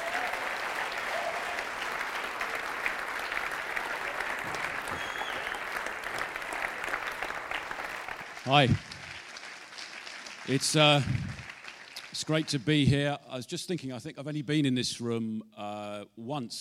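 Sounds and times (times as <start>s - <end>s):
audience applause welcoming a speaker to the stage: 0.0s - 12.8s
speech: 8.5s - 8.9s, 10.5s - 11.2s, 12.3s - 16.6s.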